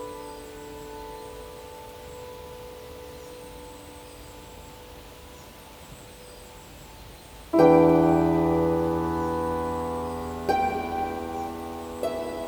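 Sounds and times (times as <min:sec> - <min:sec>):
delta wave binaural beats: 0:07.5 - 0:12.4.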